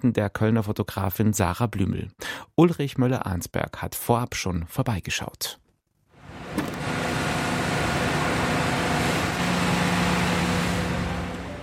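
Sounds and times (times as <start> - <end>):
speech: 0.0 - 5.6
construction noise at the Lindwurmhof: 6.3 - 11.6.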